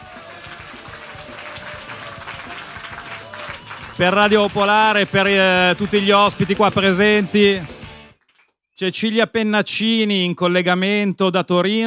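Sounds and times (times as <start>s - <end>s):
audience applause at a live radio event: 0.0s - 8.5s
speech: 4.0s - 7.8s, 8.8s - 11.8s.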